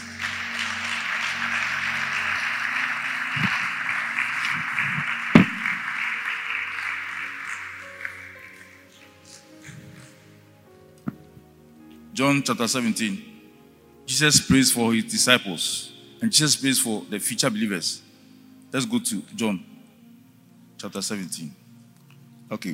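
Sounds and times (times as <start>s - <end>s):
crowd applauding: 0.0s - 10.2s
speech: 12.3s - 13.3s, 14.2s - 18.1s, 18.7s - 19.8s, 20.8s - 21.6s, 22.5s - 22.7s.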